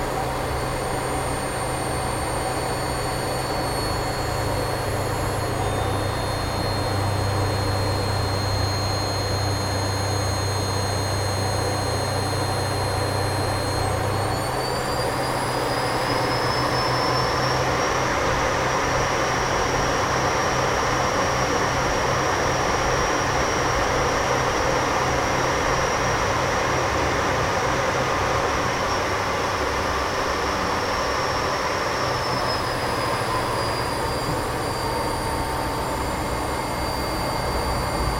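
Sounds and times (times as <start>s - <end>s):
CA-27 Sabre jet aircraft flying interior: 0.0s - 38.1s.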